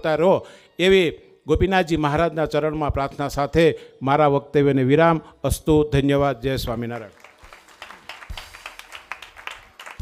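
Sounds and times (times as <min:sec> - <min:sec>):
speech: 0:00.0 - 0:07.2
audience clapping honouring a swami at a Swaminarayan katha in Gadhapur: 0:06.7 - 0:10.0.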